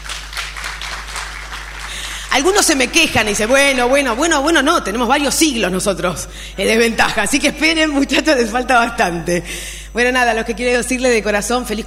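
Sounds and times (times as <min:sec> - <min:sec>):
applause: 0:00.0 - 0:04.8
speech: 0:02.3 - 0:11.8.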